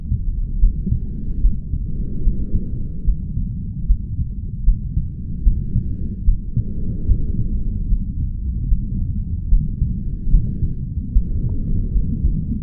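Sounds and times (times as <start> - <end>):
sounds inside a mother's womb: 0.0 - 12.6.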